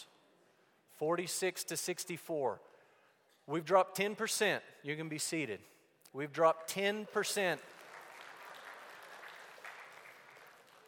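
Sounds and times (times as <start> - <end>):
speech: 1.0 - 2.7, 3.5 - 7.8
light scattered applause from an audience: 7.4 - 10.8.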